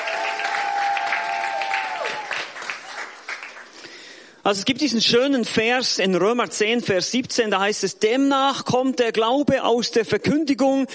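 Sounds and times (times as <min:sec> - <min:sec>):
audience applause: 0:00.0 - 0:03.8
speech: 0:04.4 - 0:10.9.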